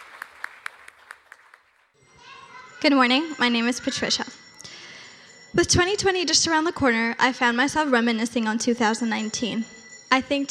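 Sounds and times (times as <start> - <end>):
audience clapping to welcome a speaker to the stage: 0.0 - 2.0
speech: 2.8 - 4.4, 5.6 - 10.4.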